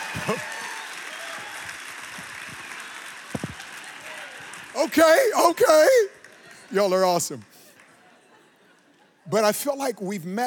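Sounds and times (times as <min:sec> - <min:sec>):
audience applause: 0:00.0 - 0:07.0
speech: 0:00.2 - 0:00.6, 0:04.8 - 0:07.5, 0:09.3 - 0:10.4.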